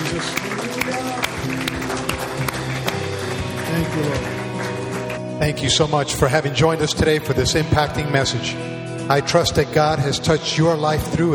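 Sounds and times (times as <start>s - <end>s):
scattered crowd noise: 0.0s - 5.2s
church congregation clapping as an offering to the Lord: 0.0s - 5.3s
speech: 3.9s - 4.3s, 5.4s - 11.3s.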